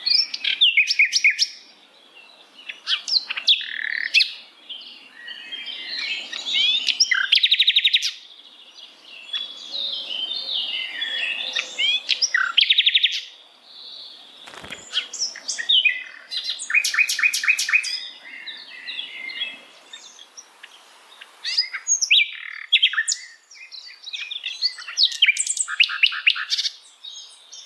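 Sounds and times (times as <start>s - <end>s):
long rambling bird song: 0.0s - 27.6s.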